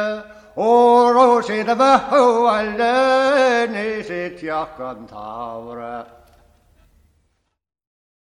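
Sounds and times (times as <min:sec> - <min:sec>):
traditional Irish unaccompanied singing: 0:00.0 - 0:06.4.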